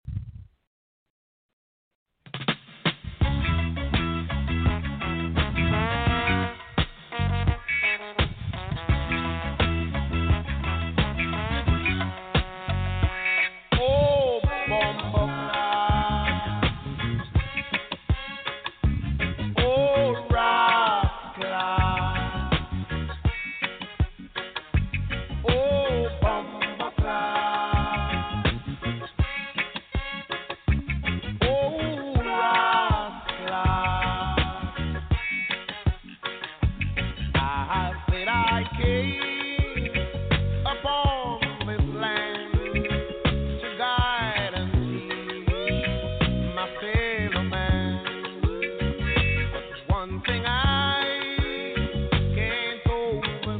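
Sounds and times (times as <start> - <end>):
reggae music mix: 2.4 - 53.5.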